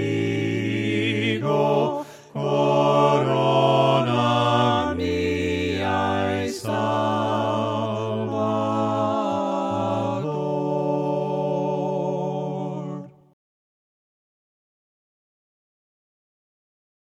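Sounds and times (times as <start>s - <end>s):
voices singing hymns a cappella: 0.0s - 13.4s.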